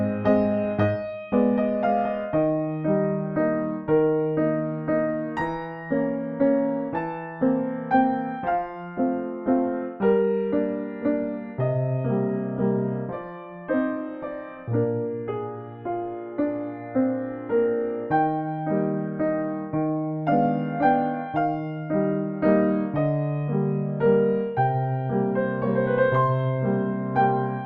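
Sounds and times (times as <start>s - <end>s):
classical piano piece excerpt: 0.0s - 27.6s.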